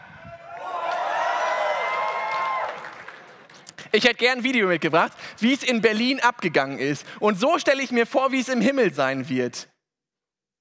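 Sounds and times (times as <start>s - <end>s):
crowd cheering: 0.0s - 3.7s
speech: 3.9s - 9.7s.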